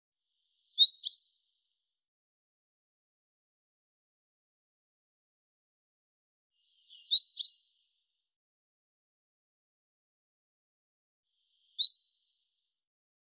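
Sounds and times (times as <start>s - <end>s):
bird giving short high chirps: 0.5s - 1.5s, 6.6s - 8.0s, 11.4s - 12.4s.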